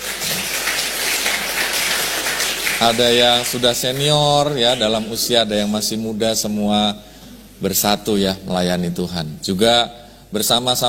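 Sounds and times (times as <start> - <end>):
crowd clapping: 0.0 - 5.3
speech: 2.8 - 10.8.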